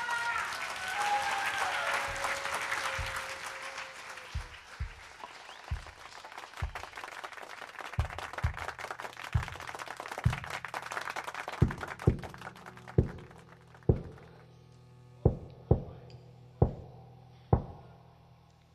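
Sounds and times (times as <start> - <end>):
audience applause: 0.0 - 14.4.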